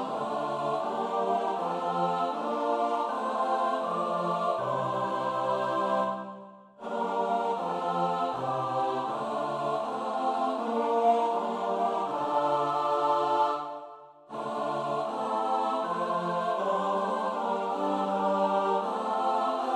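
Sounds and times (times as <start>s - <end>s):
soprano alto tenor bass choir singing: 0.0s - 19.7s.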